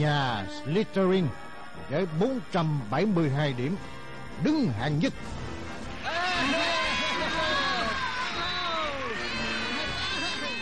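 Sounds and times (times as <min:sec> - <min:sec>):
speech: 0:00.0 - 0:05.4
crowd cheering at a school's end-of-year feast: 0:05.9 - 0:10.6.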